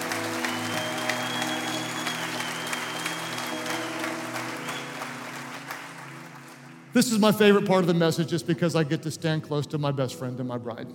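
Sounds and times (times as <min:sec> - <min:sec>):
audience clapping: 0:00.0 - 0:07.6
speech: 0:07.0 - 0:10.9.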